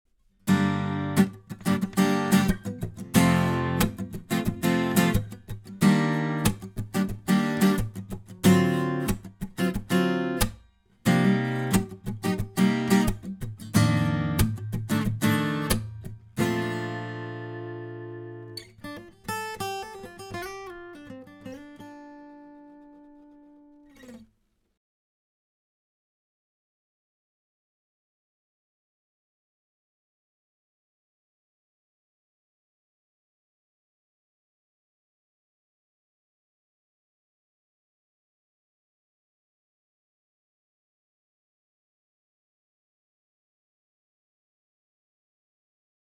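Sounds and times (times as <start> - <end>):
Takamine FT340 BS guitar strumming: 0.5 - 24.2.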